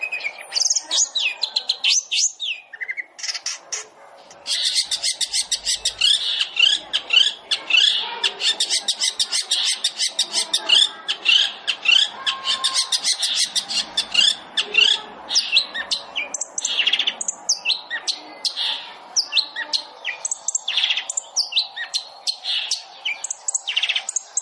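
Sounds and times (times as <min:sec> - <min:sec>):
long-tailed shrike song: 0:00.0 - 0:24.4.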